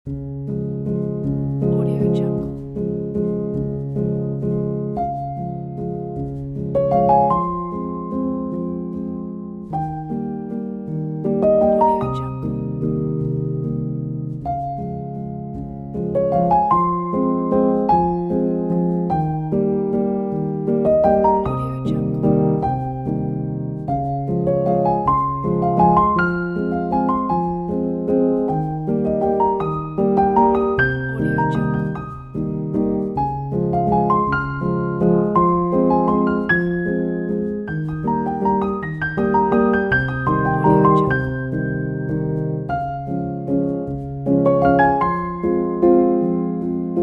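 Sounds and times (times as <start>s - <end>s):
soft piano: 0.0s - 47.0s.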